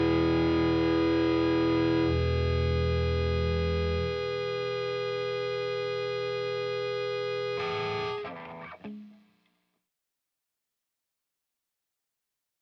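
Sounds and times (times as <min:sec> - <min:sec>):
instrumental mix: 0:00.0 - 0:09.3.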